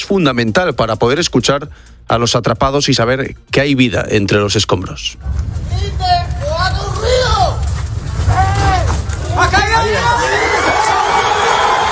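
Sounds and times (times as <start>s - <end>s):
speech: 0.1s - 6.2s
steady low rumble: 5.1s - 10.4s
crowd cheering at rescue site: 6.4s - 11.9s.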